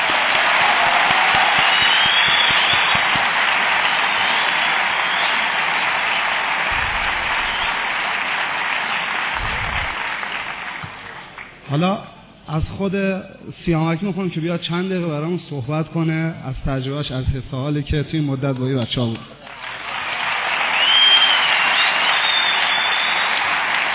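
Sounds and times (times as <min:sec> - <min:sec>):
crowd applauding: 0:00.0 - 0:11.6, 0:19.4 - 0:23.9
speech: 0:11.8 - 0:19.3.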